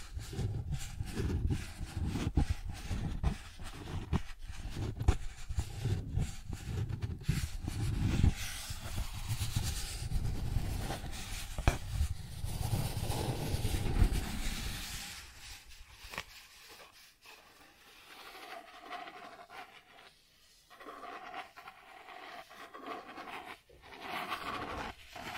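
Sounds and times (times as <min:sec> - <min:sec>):
cardboard being scratched and rubbed: 0:00.0 - 0:25.3
heavy low rumble: 0:09.8 - 0:15.6.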